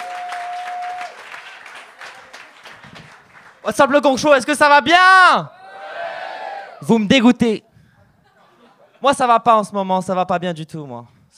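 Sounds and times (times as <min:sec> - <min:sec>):
audience applause: 0:00.0 - 0:03.7
speech: 0:03.7 - 0:05.6, 0:06.8 - 0:07.7, 0:09.0 - 0:11.3
laughter: 0:08.1 - 0:09.0.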